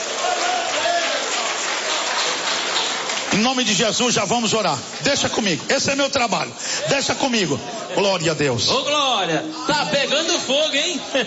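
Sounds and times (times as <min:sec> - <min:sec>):
audience clapping loudly: 0:00.0 - 0:06.0
speech: 0:03.4 - 0:11.2.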